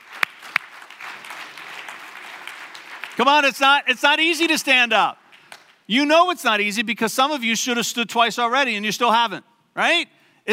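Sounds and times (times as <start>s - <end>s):
audience applause: 0.0s - 3.6s
speech: 3.2s - 5.2s, 5.9s - 10.5s.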